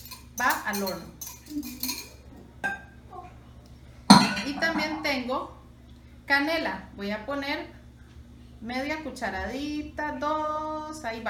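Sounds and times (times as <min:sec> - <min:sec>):
faint clinks and knocks of a mixing bowl and utensils: 0:00.0 - 0:02.9, 0:04.1 - 0:05.1
speech: 0:00.4 - 0:02.0, 0:04.6 - 0:05.6, 0:06.3 - 0:07.8, 0:08.6 - 0:11.2.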